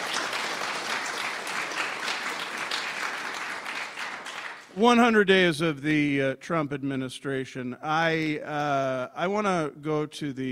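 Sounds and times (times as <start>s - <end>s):
applause for a panel group at a morning session: 0.0s - 4.8s
speech: 4.8s - 10.4s.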